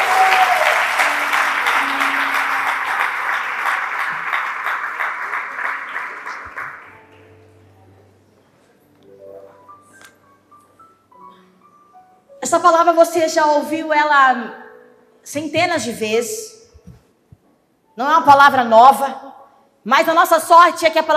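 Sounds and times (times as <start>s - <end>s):
audience applause: 0.0s - 7.3s
speech: 13.0s - 14.6s, 15.3s - 16.5s, 18.0s - 21.1s.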